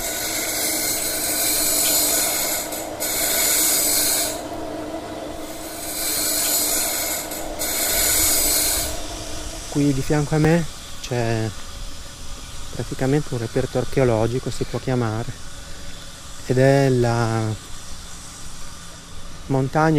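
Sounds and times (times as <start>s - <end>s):
workshop machines working on metal discs: 0.0s - 11.5s
speech: 9.8s - 11.6s, 12.8s - 15.4s, 16.5s - 17.6s, 19.5s - 19.9s.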